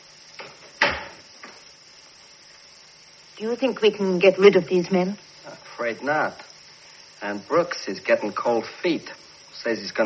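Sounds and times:
door being shut: 0.4s - 1.6s
speech: 3.4s - 6.5s, 7.2s - 10.0s.

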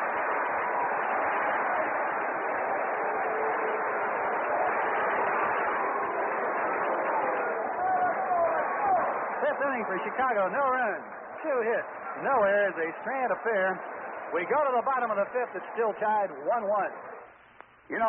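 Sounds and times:
baseball stadium crowd after double play: 0.0s - 18.0s
speech: 9.8s - 17.1s, 17.9s - 18.0s.

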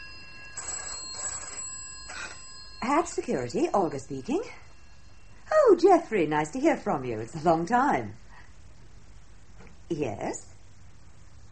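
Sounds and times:
telephone ringing: 0.0s - 5.4s
faint steady hum: 0.0s - 11.5s
speech: 2.9s - 4.7s, 5.7s - 8.2s, 9.9s - 10.5s.

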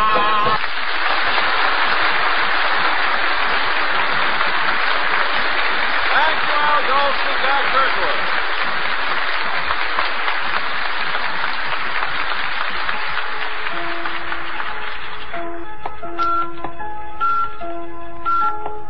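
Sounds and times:
applause-like noise: 0.0s - 16.6s
electronic observatory time signal beeps: 17.2s - 17.7s, 18.3s - 18.8s.

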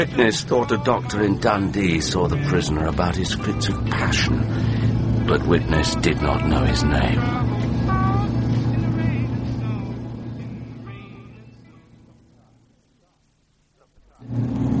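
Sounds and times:
speech: 0.0s - 4.7s, 5.3s - 7.6s
car engine droning: 0.0s - 12.8s, 14.2s - 14.7s.

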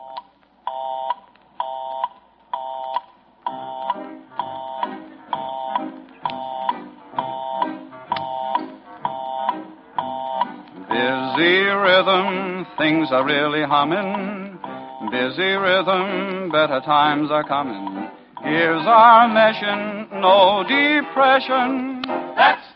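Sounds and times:
telephone busy signal: 0.0s - 10.5s, 14.6s - 15.3s
speech: 11.4s - 14.4s, 15.1s - 17.9s, 18.5s - 22.6s.

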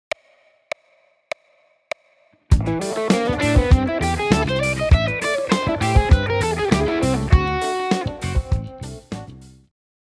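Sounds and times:
blues fusion music: 2.5s - 9.7s.

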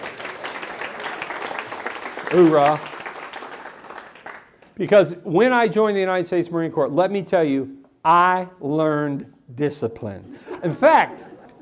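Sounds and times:
crowd applauding: 0.0s - 4.8s
speech: 2.3s - 2.9s, 4.8s - 11.6s
laughter: 10.3s - 11.6s.

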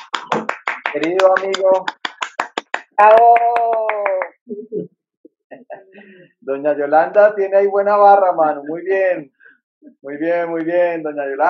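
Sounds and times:
hand claps: 0.0s - 4.4s
speech: 0.9s - 2.0s, 3.0s - 3.8s, 4.5s - 11.4s.

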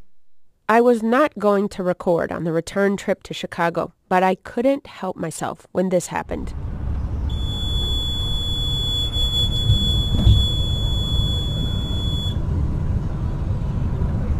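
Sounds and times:
speech: 0.7s - 6.7s
low rumble of a moving vehicle: 6.2s - 14.3s
road noise: 6.2s - 14.3s
bus speed limit warning alarm: 7.3s - 12.4s.

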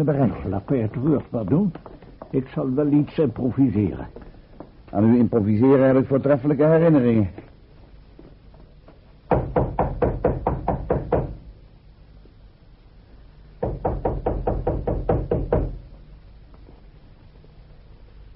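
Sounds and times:
speech: 0.0s - 4.3s, 4.9s - 7.5s
loud rapid knocking on a door: 9.3s - 11.4s, 13.6s - 15.8s.

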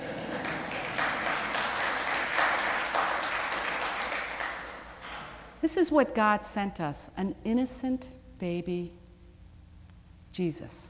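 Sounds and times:
crowd applauding: 0.0s - 5.0s
speech: 5.6s - 9.0s, 10.4s - 10.8s.

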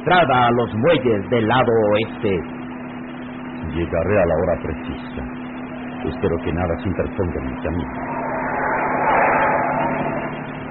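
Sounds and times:
speech: 0.0s - 2.6s, 3.7s - 5.4s, 6.0s - 8.3s
car driving through a dark alley toward the docks: 7.5s - 10.6s.

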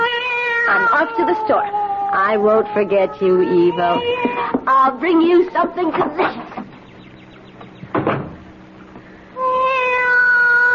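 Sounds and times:
cat meowing: 0.0s - 4.6s, 9.4s - 10.7s
speech: 0.7s - 6.6s.

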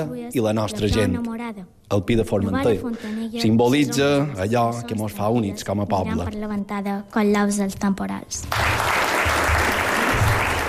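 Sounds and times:
speech: 0.0s - 8.9s
crowd applause: 8.5s - 10.6s.

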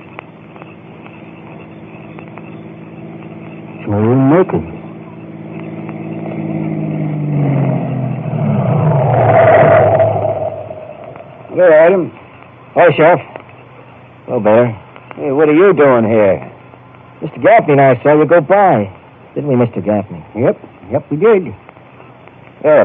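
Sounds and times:
car approaching on a road: 1.1s - 12.1s
speech: 3.9s - 4.8s, 11.9s - 12.2s, 12.8s - 13.3s, 14.3s - 16.5s, 17.2s - 21.6s, 22.6s - 22.8s.

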